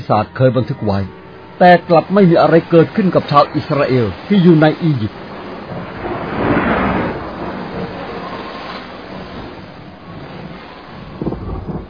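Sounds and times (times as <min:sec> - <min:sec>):
wind: 0:00.0 - 0:11.8
speech: 0:00.1 - 0:05.2
violent hailstorm: 0:01.6 - 0:11.8
thunder: 0:05.2 - 0:11.8.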